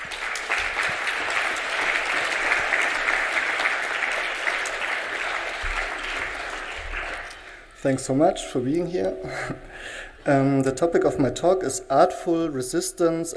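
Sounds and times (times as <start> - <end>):
audience applause: 0.0 - 7.8
speech: 7.8 - 13.3.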